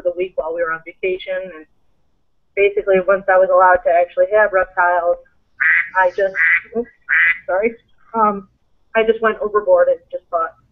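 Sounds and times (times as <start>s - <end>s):
speech: 0.6s - 1.8s, 2.6s - 10.6s
phone alarm tone imitating a duck quacking: 5.6s - 7.5s.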